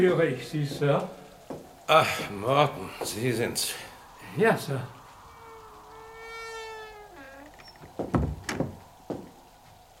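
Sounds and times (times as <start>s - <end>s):
speech: 0.0s - 1.2s, 1.9s - 5.0s, 8.0s - 8.2s
door opening: 5.3s - 8.8s.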